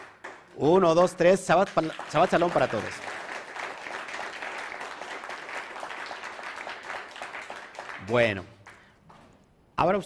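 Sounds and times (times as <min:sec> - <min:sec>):
audience applause: 0:00.0 - 0:08.9
speech: 0:00.6 - 0:03.2, 0:08.1 - 0:08.6, 0:09.8 - 0:10.0.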